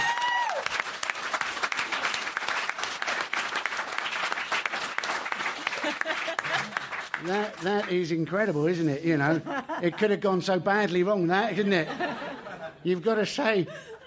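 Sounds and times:
audience applause: 0.0 - 8.3
laughter: 5.6 - 7.5, 9.2 - 10.3, 11.5 - 14.0
speech: 7.2 - 13.9.

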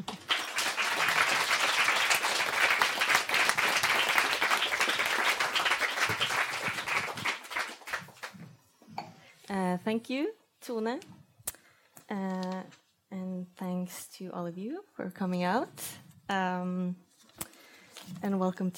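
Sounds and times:
audience clapping at a literary event at the Oslo House of Literature: 0.0 - 8.5
speech: 9.8 - 11.2, 12.1 - 17.0, 18.2 - 18.7.

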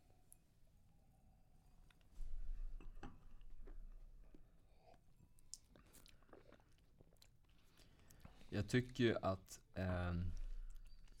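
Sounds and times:
chewing and biting while tasting food: 4.8 - 8.4
speech: 8.6 - 10.4.

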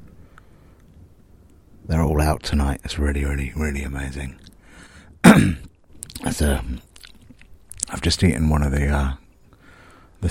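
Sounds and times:
speech: 1.9 - 4.5, 5.4 - 5.6, 6.2 - 6.9, 7.9 - 9.2
person coughing from roast potato stuck in throat: 5.2 - 5.7.

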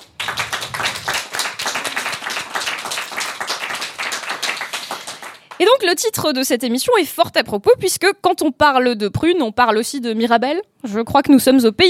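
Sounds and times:
audience applause: 0.0 - 5.6
speech: 5.6 - 11.8.

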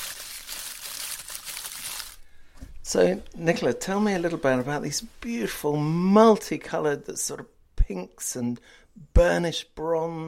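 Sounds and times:
gentle rustling of dried flowers: 0.0 - 2.2
speech: 2.9 - 10.2.

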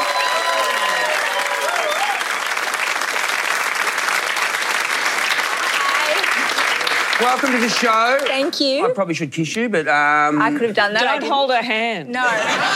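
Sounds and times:
whistle-like cheers: 0.0 - 2.2
audience applause welcoming a guest onto a show: 0.0 - 8.5
speech: 7.2 - 12.7
laughter: 12.2 - 12.7.

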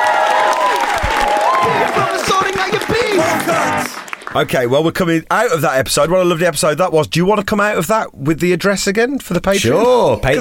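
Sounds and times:
crowd applauding: 0.0 - 4.7
speech: 4.3 - 10.3.

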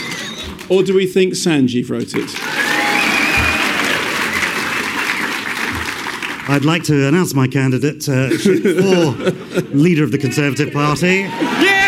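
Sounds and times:
speech: 0.7 - 2.6, 6.5 - 11.7
audience applause: 2.2 - 7.0
thin high whistle: 2.7 - 4.6
laughter: 8.2 - 11.8.

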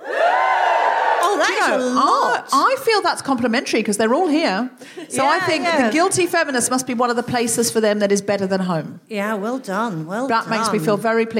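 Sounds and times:
audience cheering: 0.0 - 2.1
speech: 1.6 - 11.3.

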